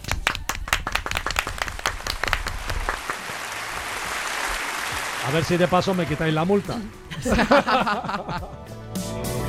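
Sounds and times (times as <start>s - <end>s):
audience applause: 0.0s - 6.9s
speech: 5.3s - 9.3s
laughter: 7.1s - 8.7s.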